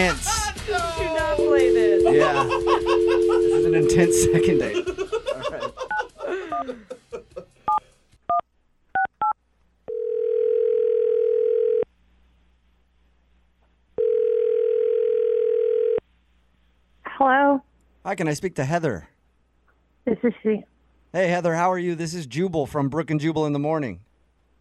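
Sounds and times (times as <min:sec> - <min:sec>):
speech: 0:00.0 - 0:04.9, 0:18.1 - 0:19.2, 0:20.0 - 0:24.1
telephone ringing tones: 0:01.4 - 0:04.8, 0:09.9 - 0:11.8, 0:14.0 - 0:16.0
laughter: 0:02.1 - 0:03.7, 0:04.7 - 0:07.7.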